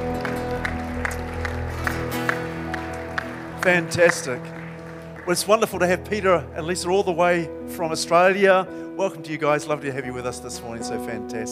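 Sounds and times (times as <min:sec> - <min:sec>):
church congregation clapping to welcome visitors at a morning service: 0:00.0 - 0:06.5
speech: 0:03.6 - 0:04.6, 0:05.3 - 0:11.4.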